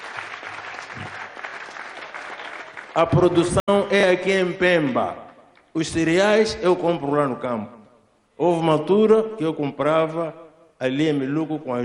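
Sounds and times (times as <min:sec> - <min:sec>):
audience applause following a presentation: 0:00.0 - 0:03.3
speech: 0:03.0 - 0:05.2, 0:05.8 - 0:07.8, 0:08.4 - 0:11.8.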